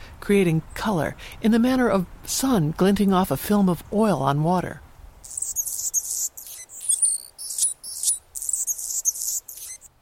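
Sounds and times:
speech: 0:00.3 - 0:04.8
Anna's hummingbird giving buzzy bursts: 0:05.2 - 0:09.9.

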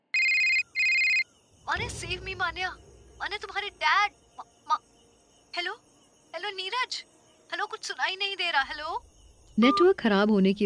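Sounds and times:
phone ringtone for incoming call: 0:00.1 - 0:01.3
speech: 0:01.8 - 0:04.9, 0:05.5 - 0:10.6.

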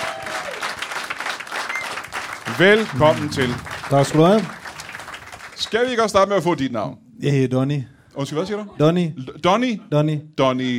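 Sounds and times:
studio audience clapping welcoming a politician guest on a Danish show: 0:00.0 - 0:06.3
speech: 0:02.5 - 0:04.6, 0:05.7 - 0:10.7.

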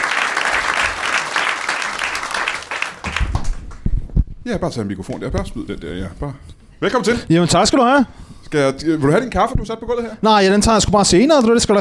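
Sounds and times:
audience applause greeting a wedding planner guest: 0:00.0 - 0:03.8
speech: 0:04.5 - 0:11.7.

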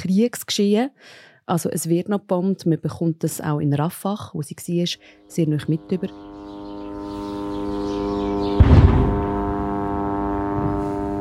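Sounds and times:
speech: 0:00.0 - 0:06.4
military drones buzzing overhead: 0:04.7 - 0:11.2.

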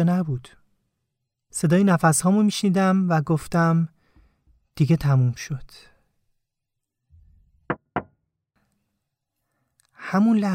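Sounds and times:
speech: 0:00.0 - 0:00.6, 0:01.5 - 0:04.0, 0:04.8 - 0:05.9, 0:10.0 - 0:10.5
knocking on a car window: 0:07.7 - 0:08.1.

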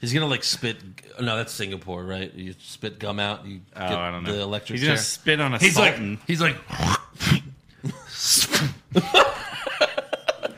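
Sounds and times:
speech: 0:00.0 - 0:07.4, 0:09.0 - 0:09.3
person imitating throat clearing: 0:06.7 - 0:08.8
laughter: 0:08.9 - 0:10.5.

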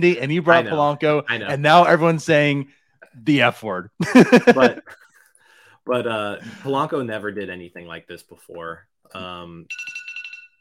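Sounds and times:
speech: 0:00.0 - 0:05.0, 0:05.8 - 0:10.0
laughter: 0:04.0 - 0:05.0
phone alarm going off: 0:09.7 - 0:10.6.

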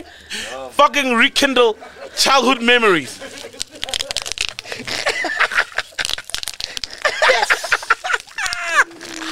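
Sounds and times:
speech: 0:00.0 - 0:03.3
people laughing: 0:01.7 - 0:09.1
bubble wrap popping: 0:03.2 - 0:09.3.

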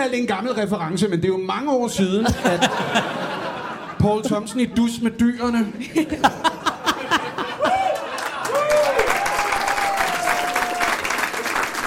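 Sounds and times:
speech: 0:00.0 - 0:03.4, 0:04.0 - 0:06.5
crowd laughing: 0:02.2 - 0:10.8
audience clapping: 0:06.9 - 0:11.8.

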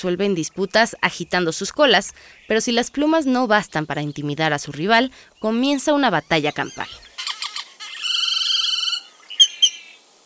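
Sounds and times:
speech: 0:00.0 - 0:07.1
Great-tailed Grackle calling: 0:05.4 - 0:10.2.

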